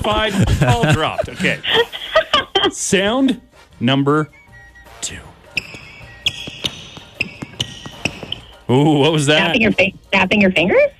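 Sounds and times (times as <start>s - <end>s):
speech: 0.0s - 2.0s, 2.7s - 4.4s, 5.0s - 5.7s, 8.7s - 10.9s
laughter: 0.0s - 3.3s
shoes squeaking on a gym floor: 4.3s - 8.7s.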